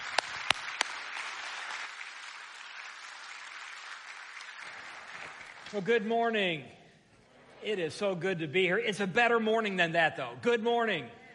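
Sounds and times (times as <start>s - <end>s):
audience applause: 0.0s - 6.0s
speech: 5.7s - 6.8s, 7.6s - 11.2s.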